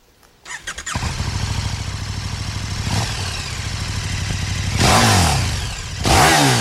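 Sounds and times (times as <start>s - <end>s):
motorcycle engine revving: 0.5s - 6.5s.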